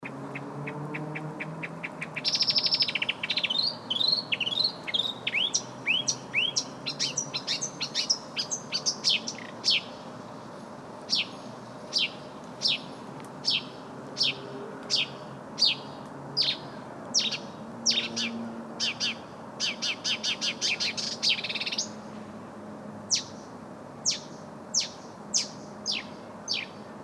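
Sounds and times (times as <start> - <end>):
bird giving sharp high downward-slurred chirps and rapid repeated notes: 0.0 - 10.1, 11.1 - 22.0, 23.1 - 26.9.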